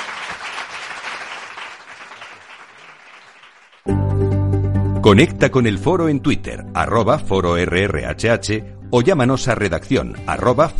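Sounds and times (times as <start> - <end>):
applause for a departing guest: 0.0 - 3.9
speech: 5.0 - 10.7.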